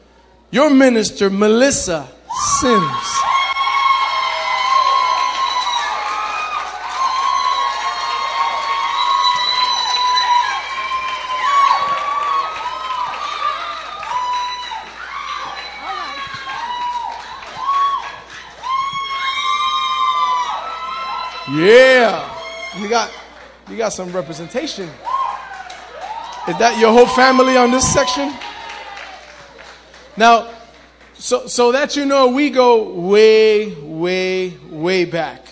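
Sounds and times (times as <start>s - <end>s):
speech: 0.5s - 3.2s, 23.8s - 25.1s, 26.5s - 28.5s, 30.2s - 30.6s, 31.2s - 35.4s
church congregation cheering and whooping to welcome a minister: 2.3s - 30.2s.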